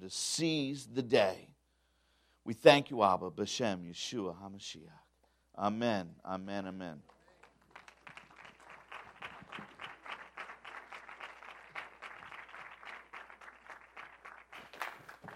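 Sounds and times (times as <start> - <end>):
speech: 0.0 - 1.5, 2.4 - 5.0, 5.6 - 7.2
audience applause: 7.0 - 15.3.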